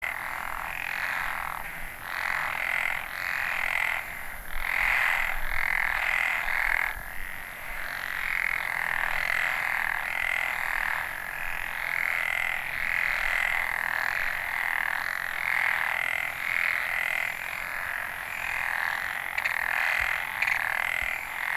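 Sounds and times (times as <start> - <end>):
frogs calling in a continuous chorus in Ehime, Japan: 0.0 - 21.5.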